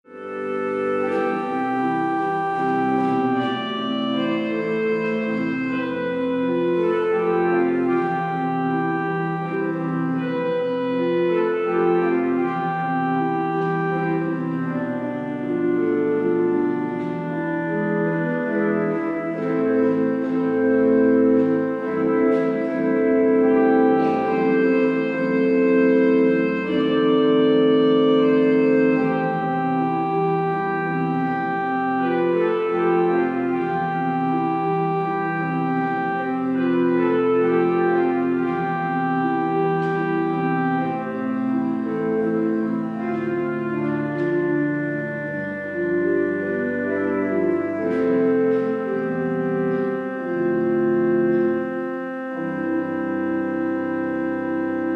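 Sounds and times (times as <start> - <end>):
organ: 0.0 - 54.9.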